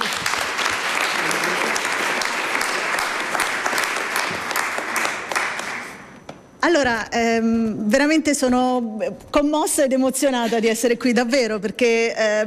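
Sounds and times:
audience applause: 0.0s - 6.1s
speech: 6.7s - 12.4s.

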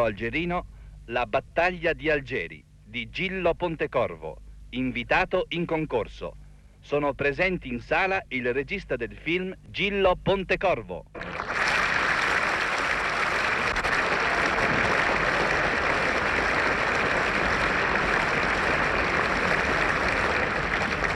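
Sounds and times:
speech: 0.0s - 11.5s
audience applause in cinema hall: 11.2s - 21.1s.

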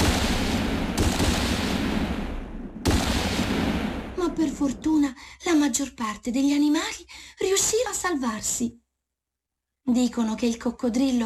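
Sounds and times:
gunshots crackling: 0.0s - 4.4s
speech: 4.5s - 8.8s, 9.9s - 11.2s.

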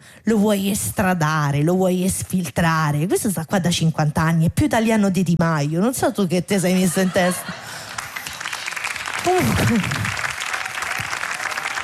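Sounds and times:
speech: 0.2s - 7.8s, 9.2s - 10.0s
laughter: 6.7s - 8.6s
audience applause: 7.6s - 11.8s.

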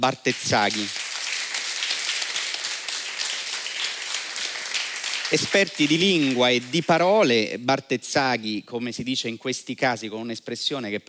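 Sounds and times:
speech: 0.0s - 1.0s, 5.3s - 11.0s
audience applause: 0.3s - 7.3s.

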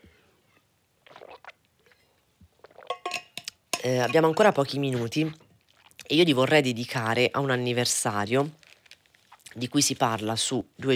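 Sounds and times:
person sipping and swallowing water: 1.0s - 3.7s, 4.9s - 6.1s
speech: 3.8s - 5.4s, 6.1s - 8.6s, 9.6s - 10.9s.

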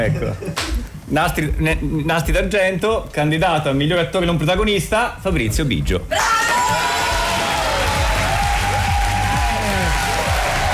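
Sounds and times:
speech: 0.0s - 6.9s
audience applause and cheering at the Nastri d'Argento film awards: 6.1s - 10.7s.

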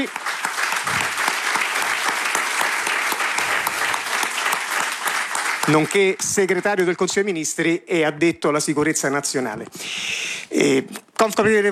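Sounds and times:
speech: 0.0s - 0.2s, 5.7s - 11.6s
audience applause: 0.0s - 6.6s.

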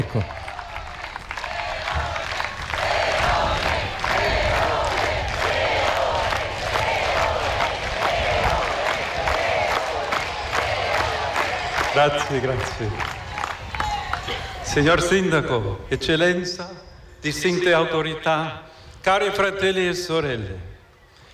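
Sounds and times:
speech: 0.0s - 0.4s, 12.0s - 13.1s, 14.7s - 20.7s
crowd applauding and cheering: 0.0s - 14.9s.

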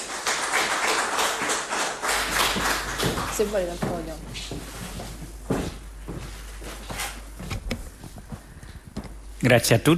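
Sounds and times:
audience applause welcoming a speaker: 0.0s - 3.5s
speech: 3.4s - 4.5s, 9.4s - 9.9s.

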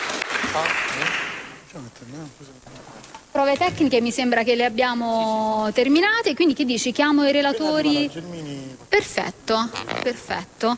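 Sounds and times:
audience applause: 0.0s - 1.6s
speech: 0.5s - 10.7s.

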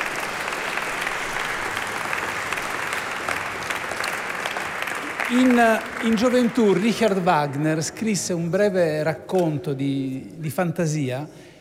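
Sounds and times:
audience applause: 0.0s - 8.2s
speech: 5.3s - 11.4s.

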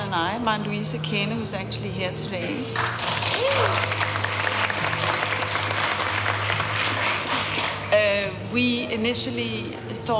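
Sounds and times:
speech: 0.1s - 4.1s, 8.0s - 10.1s
audience applause: 2.8s - 7.9s.

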